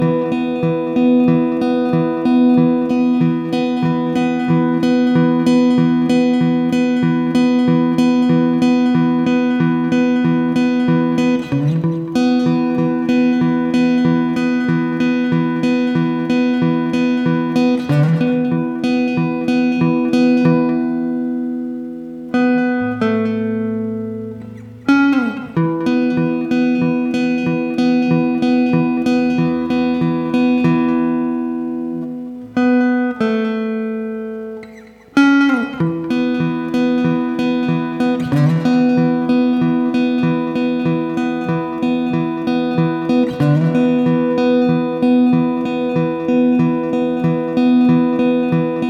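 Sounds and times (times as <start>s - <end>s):
guitar: 0.0s - 48.8s.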